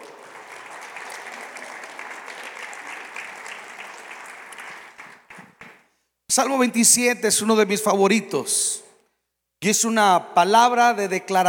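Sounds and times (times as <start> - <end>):
audience applause: 0.0 - 5.8
speech: 6.4 - 8.8, 9.6 - 11.4.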